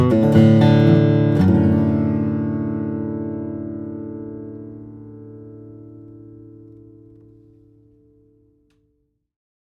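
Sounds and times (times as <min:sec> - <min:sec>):
dreadnought steel-string flattop guitar of Brazilian rosewood and Carpathian spruce: 0:00.0 - 0:08.4.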